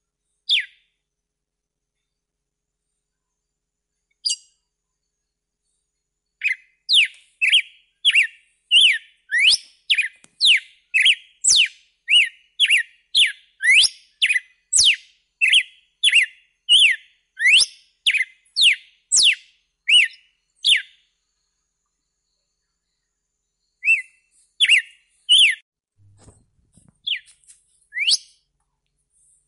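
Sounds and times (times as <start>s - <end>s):
red-cowled cardinal whistled song: 0.5s - 0.8s, 6.4s - 21.1s, 23.7s - 25.6s, 27.0s - 28.4s.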